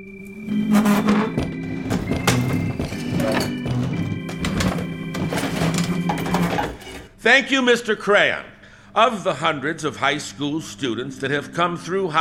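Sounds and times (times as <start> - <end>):
chairs scraping, clattering and thumping across a floor: 0.5 - 7.2
speech: 7.2 - 12.1.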